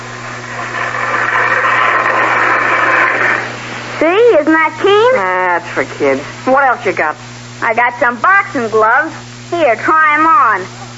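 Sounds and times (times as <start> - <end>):
toy electric train running on track: 0.0 - 3.5
speech: 4.4 - 10.9.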